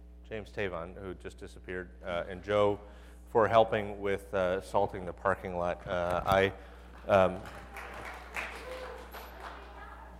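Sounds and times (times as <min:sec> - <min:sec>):
speech: 0:00.3 - 0:07.6
light polite applause: 0:05.8 - 0:10.1.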